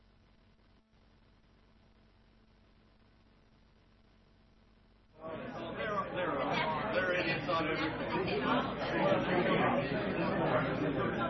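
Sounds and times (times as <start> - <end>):
crowd chatter: 5.2 - 11.2.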